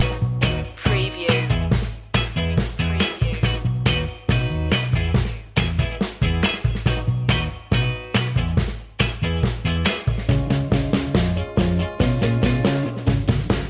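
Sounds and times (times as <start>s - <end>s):
old school Detroit techno loop: 0.0s - 13.6s.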